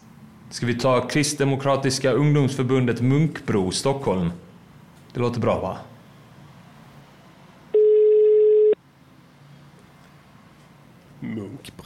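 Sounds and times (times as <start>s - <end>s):
speech: 0.5s - 4.5s, 5.2s - 5.9s, 11.6s - 11.8s
telephone dial tone: 7.8s - 8.8s.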